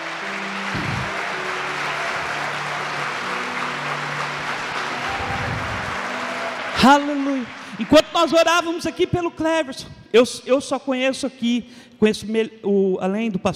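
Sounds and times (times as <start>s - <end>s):
audience applause: 0.0s - 8.8s
speech: 6.8s - 13.5s.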